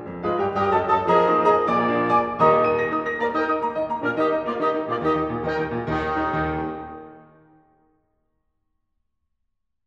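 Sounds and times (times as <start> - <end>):
wind quintet playing fourth movement: 0.2 - 7.6.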